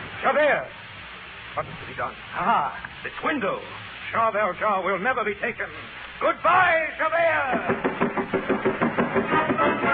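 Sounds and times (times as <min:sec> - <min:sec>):
speech: 0:00.3 - 0:00.9, 0:01.5 - 0:08.4
plodding footsteps on stairs: 0:07.5 - 0:09.8.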